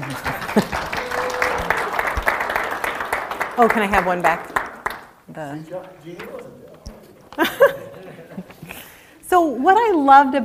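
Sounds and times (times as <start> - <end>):
laughter: 0.0 - 2.6, 6.6 - 9.1
audience applause: 0.0 - 6.2
speech: 0.1 - 0.8, 3.6 - 4.6, 5.3 - 6.6, 9.3 - 10.4.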